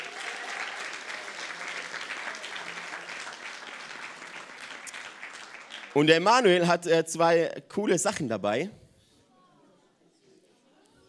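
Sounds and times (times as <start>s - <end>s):
audience applause: 0.0s - 6.6s
speech: 6.0s - 8.8s.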